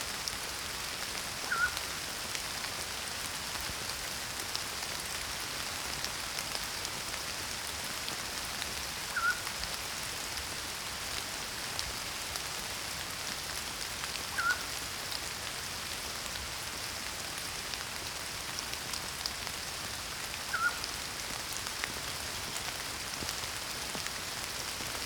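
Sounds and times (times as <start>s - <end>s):
rain: 0.0s - 25.0s
pygmy owl calling: 1.5s - 1.8s, 9.1s - 9.4s, 14.3s - 14.7s, 20.5s - 20.8s.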